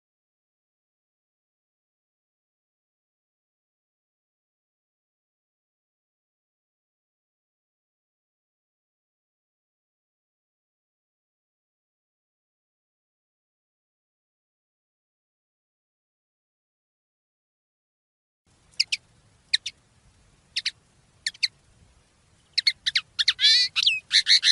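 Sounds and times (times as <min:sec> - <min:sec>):
common linnet singing rapid twitter and nasal trills: 0:18.8 - 0:19.8, 0:20.5 - 0:21.6, 0:22.4 - 0:24.4.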